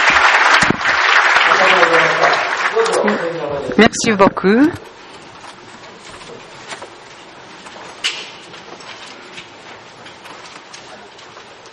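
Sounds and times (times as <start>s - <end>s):
audience applause: 0.0s - 4.0s
speech: 3.0s - 4.9s.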